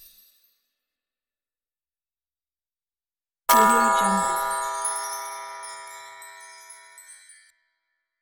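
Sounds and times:
Christmas bells hits: 0:03.5 - 0:07.3.

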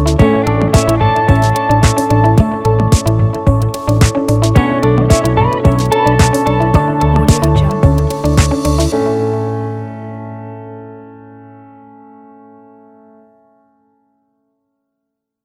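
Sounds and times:
science corporate music: 0:00.0 - 0:11.4.

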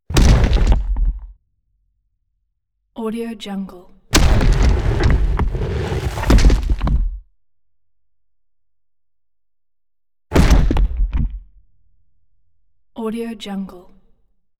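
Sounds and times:
huge crunchy rock hit thunk impacts booming: 0:00.1 - 0:01.2, 0:04.2 - 0:07.2, 0:10.4 - 0:11.1.

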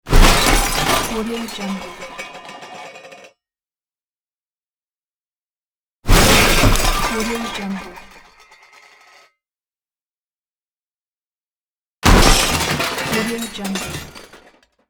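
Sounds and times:
crash: 0:00.1 - 0:03.3, 0:06.1 - 0:09.3, 0:12.0 - 0:14.6.

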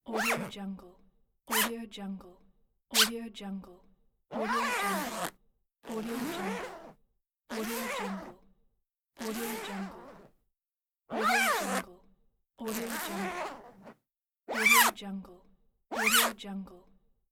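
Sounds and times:
zipper: 0:00.0 - 0:00.6, 0:01.5 - 0:01.7, 0:02.9 - 0:03.1, 0:04.3 - 0:08.4, 0:09.2 - 0:10.4, 0:11.1 - 0:11.9, 0:12.6 - 0:15.0, 0:15.9 - 0:16.4.

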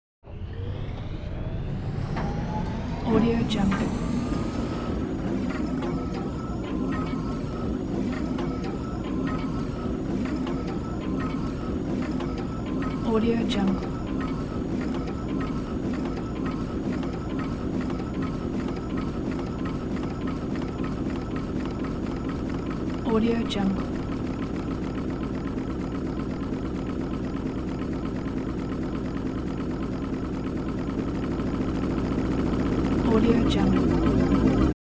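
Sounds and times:
transporter wind-up motor: 0:00.3 - 0:34.8.

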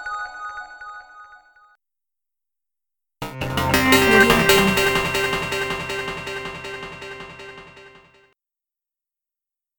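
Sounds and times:
device turning on: 0:03.3 - 0:08.1.

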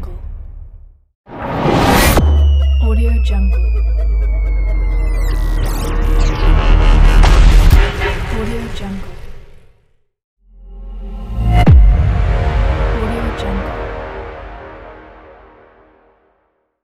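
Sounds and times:
transition effects: 0:01.3 - 0:08.4, 0:10.6 - 0:16.2.

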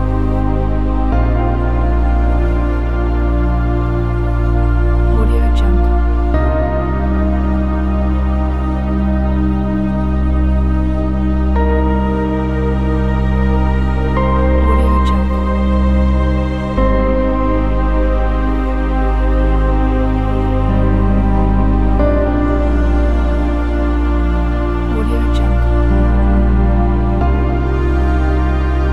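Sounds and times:
emotional ambient soundscape: 0:00.0 - 0:28.9.

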